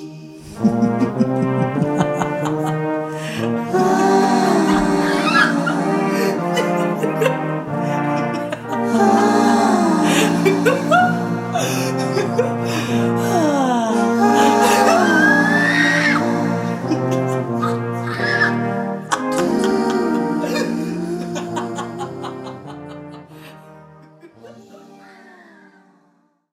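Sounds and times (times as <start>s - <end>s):
laughter: 0.4s - 25.8s
person yodeling joyfully: 3.3s - 7.4s, 8.2s - 12.6s, 13.3s - 22.9s, 24.3s - 25.8s.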